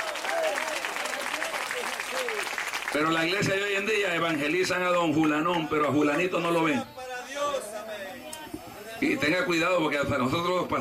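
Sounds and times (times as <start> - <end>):
church congregation applauding during a Spanish-language service: 0.0 - 3.9
speech: 3.0 - 7.0, 9.0 - 10.7.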